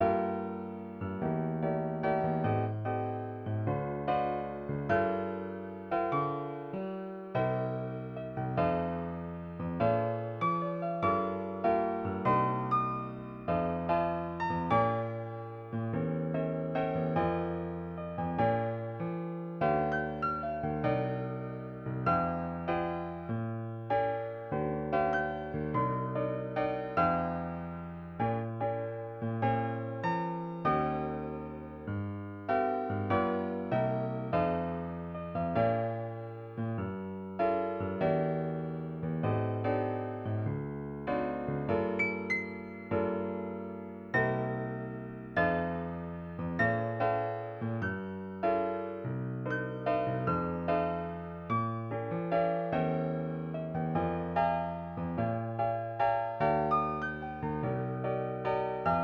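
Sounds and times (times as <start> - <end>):
romantic wedding piano music: 0.0 - 59.0.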